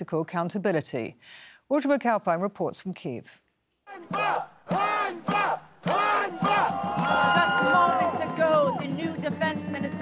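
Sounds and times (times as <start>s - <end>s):
speech: 0.0s - 3.4s, 4.0s - 7.8s
protesters shouting in a crowd: 3.9s - 8.9s.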